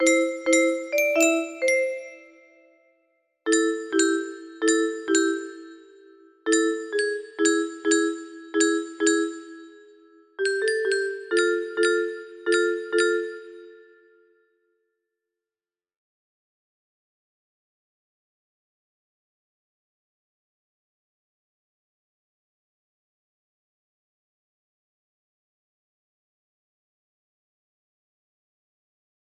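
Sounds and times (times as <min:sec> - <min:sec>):
melody: 0:00.0 - 0:02.6, 0:03.5 - 0:14.1.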